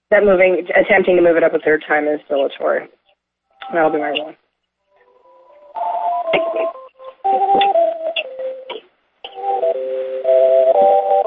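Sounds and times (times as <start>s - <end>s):
speech: 0.1s - 3.0s, 3.7s - 4.4s, 6.3s - 8.0s
tinny circus music through a phone speaker: 5.1s - 11.2s.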